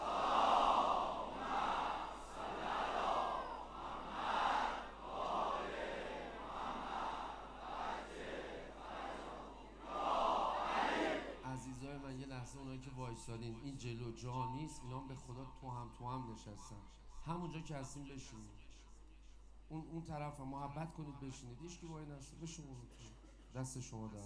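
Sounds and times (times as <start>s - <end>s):
crowd at a religious gathering chanting salawat in unison: 0.0s - 11.5s
speech: 12.8s - 18.6s, 19.7s - 24.2s.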